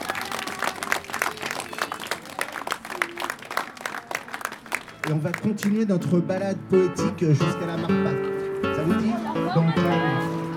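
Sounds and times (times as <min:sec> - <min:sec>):
audience applauding: 0:00.0 - 0:05.8
speech: 0:05.1 - 0:10.4.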